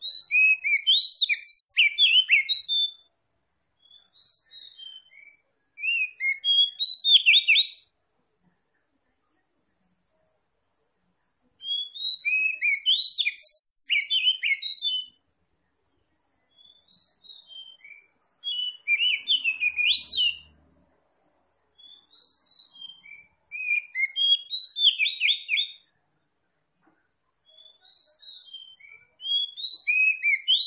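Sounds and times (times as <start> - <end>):
Oriental magpie-robin singing: 0.0 - 3.1, 3.8 - 7.9, 11.6 - 15.2, 16.4 - 20.5, 21.7 - 25.9, 27.4 - 30.6.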